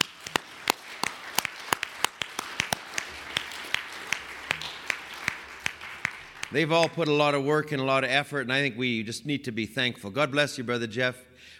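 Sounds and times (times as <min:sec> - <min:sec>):
audience applauding: 0:00.0 - 0:07.0
speech: 0:06.5 - 0:11.5.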